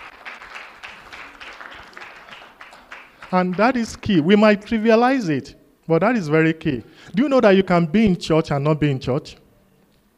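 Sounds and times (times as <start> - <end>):
audience clapping: 0.0 - 4.8
speech: 3.3 - 9.4.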